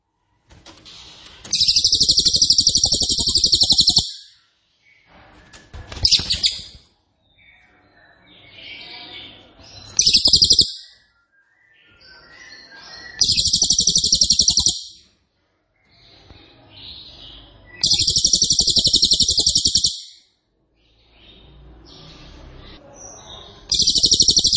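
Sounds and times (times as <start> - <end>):
cililin song trilling: 1.5 - 4.4, 6.1 - 6.8, 10.0 - 11.0, 13.1 - 15.0, 17.8 - 20.2, 23.7 - 24.5.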